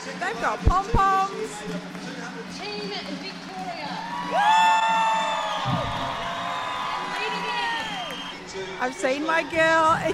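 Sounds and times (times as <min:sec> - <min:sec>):
speech: 0:00.1 - 0:04.8, 0:08.8 - 0:10.1
crowd cheering in arena: 0:03.8 - 0:10.1.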